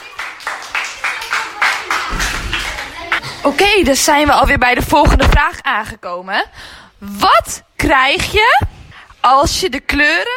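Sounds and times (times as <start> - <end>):
applause: 0.0 - 3.2
speech: 3.4 - 10.3.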